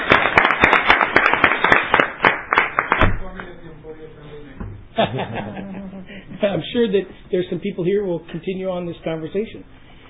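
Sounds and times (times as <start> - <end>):
scattered applause from a small group at a meeting: 0.0 - 3.0
laughter: 5.0 - 6.4
speech: 6.4 - 9.8.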